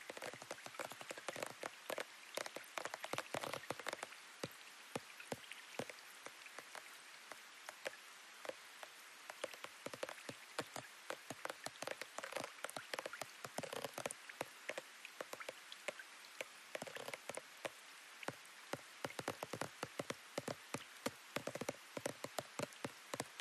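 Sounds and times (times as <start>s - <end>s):
light drippy rain: 0.0s - 23.3s.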